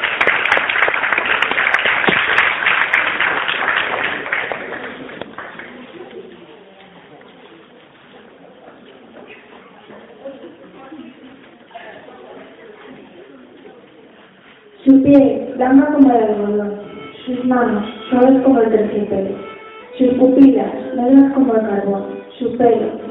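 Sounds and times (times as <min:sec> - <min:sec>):
audience applause: 0:00.0 - 0:06.1
speech: 0:15.1 - 0:19.4, 0:20.0 - 0:23.0.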